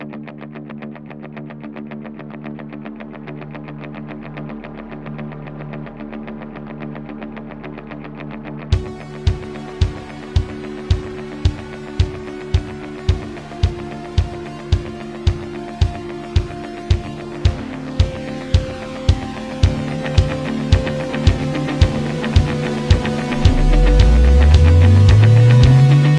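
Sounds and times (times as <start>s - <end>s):
music intro at 110 bpm: 8.7s - 26.1s.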